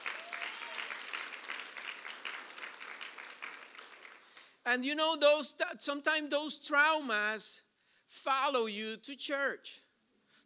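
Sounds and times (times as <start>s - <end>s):
audience applause: 0.0s - 4.6s
speech: 4.7s - 9.8s.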